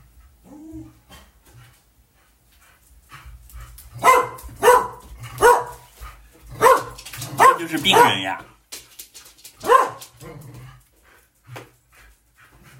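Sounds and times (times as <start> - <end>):
dog barking: 4.0 - 5.9, 6.6 - 8.4, 9.6 - 10.1
speech: 7.6 - 8.5.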